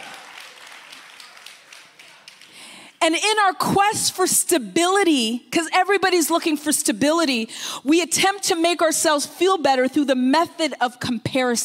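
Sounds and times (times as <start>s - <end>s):
audience clapping: 0.0s - 2.8s
speech: 3.0s - 11.6s.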